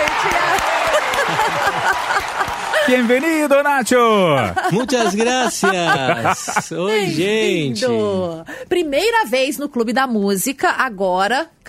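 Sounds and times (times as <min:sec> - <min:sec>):
audience at a music show applauding a guest singer: 0:00.0 - 0:04.4
people cheering: 0:00.0 - 0:04.4
laughter: 0:00.3 - 0:03.4, 0:04.2 - 0:07.3
speech: 0:02.9 - 0:11.6.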